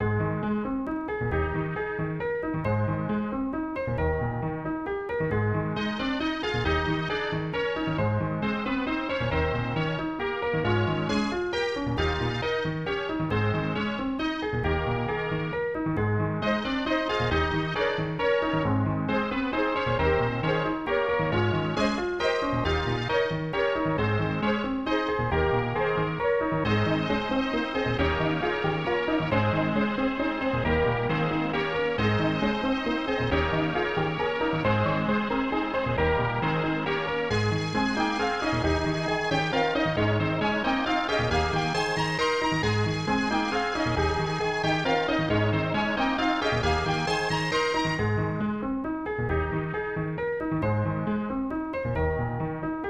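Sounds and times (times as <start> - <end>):
waltz music: 0.0 - 52.8.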